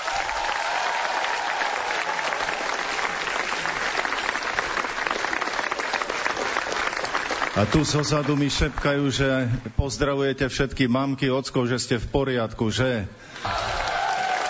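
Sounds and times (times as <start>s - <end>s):
audience applause: 0.0s - 9.3s, 13.3s - 14.4s
speech: 7.6s - 13.6s.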